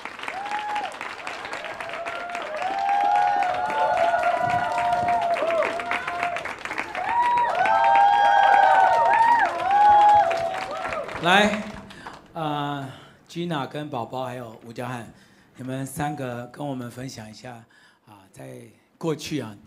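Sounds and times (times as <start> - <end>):
crowd applauding: 0.0 - 12.4
speech: 11.2 - 11.6, 13.4 - 19.6.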